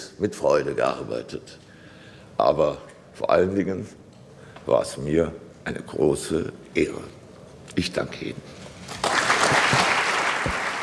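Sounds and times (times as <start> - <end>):
speech: 0.2 - 1.7, 2.4 - 4.0, 4.7 - 8.6
parliament applause in the Landtag: 8.9 - 10.8.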